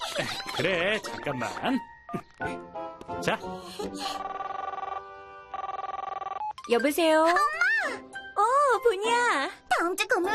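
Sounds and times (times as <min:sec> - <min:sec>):
speech: 0:00.2 - 0:04.4, 0:06.7 - 0:10.3
phone ringing during outgoing call: 0:04.0 - 0:06.8.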